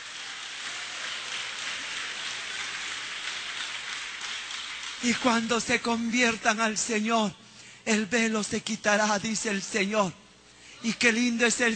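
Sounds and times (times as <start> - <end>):
audience applauding: 0.0 - 6.0
speech: 5.0 - 10.2, 10.8 - 11.7.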